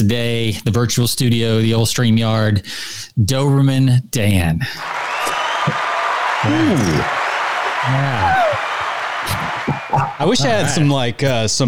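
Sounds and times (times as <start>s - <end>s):
speech: 0.0s - 5.8s, 6.4s - 7.2s, 7.8s - 11.6s
applause sound effect: 4.8s - 10.6s.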